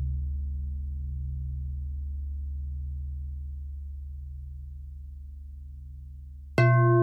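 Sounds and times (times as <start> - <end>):
bells ringing: 6.6 - 7.0.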